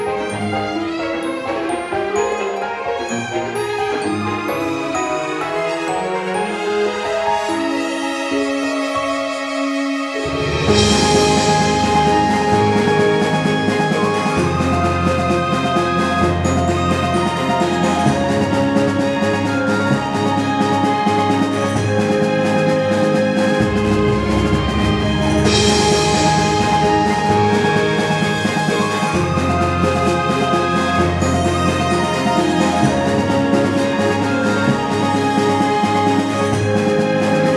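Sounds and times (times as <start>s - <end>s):
orchestral music: 0.0s - 37.5s.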